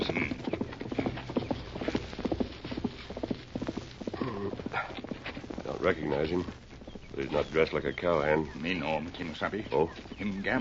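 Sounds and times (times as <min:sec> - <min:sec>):
horse hoofbeats on a trail past a cove into town: 0:00.0 - 0:10.6
speech: 0:05.8 - 0:06.6, 0:07.2 - 0:10.6.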